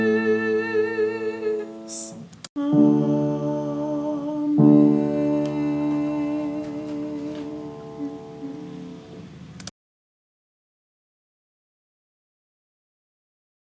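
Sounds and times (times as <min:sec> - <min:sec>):
soprano singing: 0:00.0 - 0:09.4.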